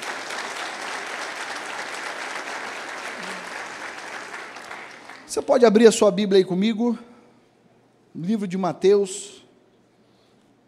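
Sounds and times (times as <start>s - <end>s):
audience applauding: 0.0s - 5.6s
speech: 5.3s - 7.1s, 8.2s - 9.4s.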